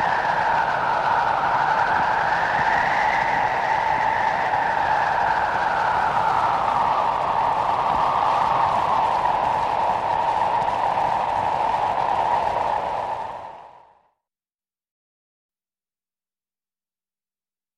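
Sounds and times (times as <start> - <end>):
wind: 0.0 - 14.0.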